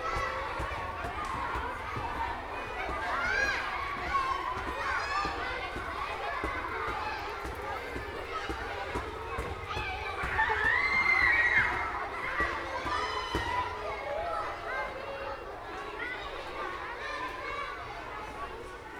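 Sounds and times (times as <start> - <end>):
schoolyard noise: 0.0 - 18.9.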